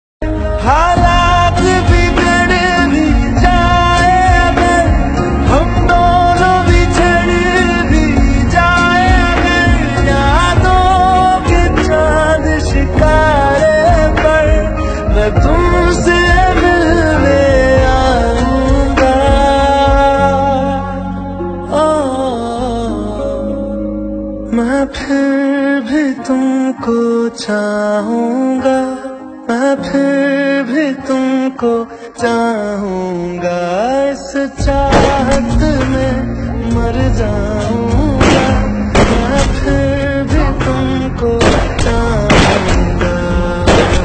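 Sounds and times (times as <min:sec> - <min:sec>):
heart touching love ringtone: 0:00.2 - 0:44.0.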